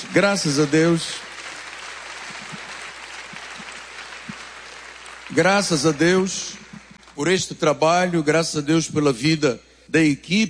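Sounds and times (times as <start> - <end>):
audience applause: 0.0 - 7.2
speech: 0.2 - 1.3, 5.4 - 6.6, 7.2 - 10.4.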